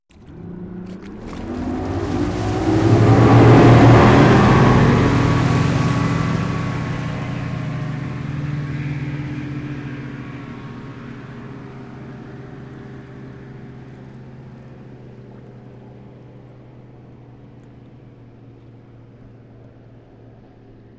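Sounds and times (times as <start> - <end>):
motorboat sailing away: 0.1 - 20.9.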